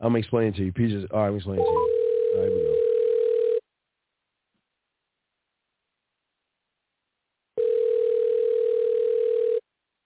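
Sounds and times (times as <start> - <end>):
speech: 0.0 - 2.9
outgoing phone call ringing tone: 1.6 - 3.6, 7.6 - 9.6.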